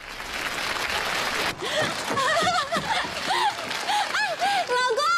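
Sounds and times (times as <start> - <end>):
audience applause: 0.0 - 5.0.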